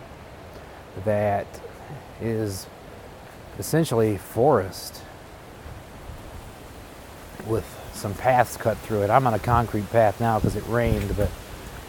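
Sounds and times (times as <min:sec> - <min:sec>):
speech: 0:01.0 - 0:02.8, 0:03.6 - 0:05.1, 0:07.4 - 0:11.4
strong wind blowing outdoors in a park: 0:05.5 - 0:11.8.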